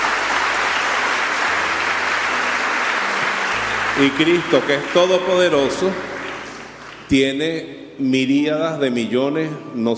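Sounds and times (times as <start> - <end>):
audience applause: 0.0 - 7.4
speech: 4.0 - 6.1, 7.1 - 9.9.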